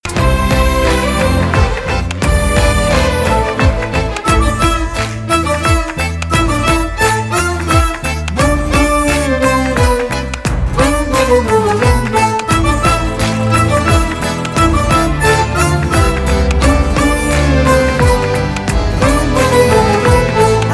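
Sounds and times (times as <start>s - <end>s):
background music: 0.0s - 20.7s.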